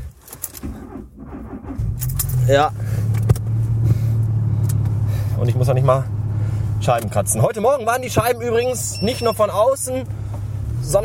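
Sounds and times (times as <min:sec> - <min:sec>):
car engine starting in cold weather: 0:00.1 - 0:11.0
keys jingling: 0:02.0 - 0:02.5
speech: 0:02.5 - 0:02.8, 0:05.4 - 0:06.2, 0:06.8 - 0:10.2, 0:10.8 - 0:11.0.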